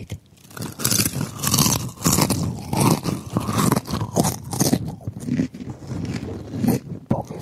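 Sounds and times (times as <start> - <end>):
chewing crunchy potato chips: 0.4 - 7.4.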